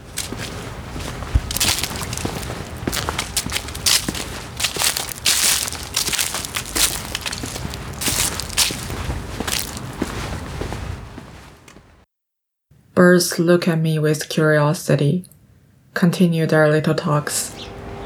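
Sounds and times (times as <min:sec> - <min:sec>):
footsteps walking: 0:00.0 - 0:11.9
speech: 0:13.1 - 0:15.4, 0:16.0 - 0:17.6.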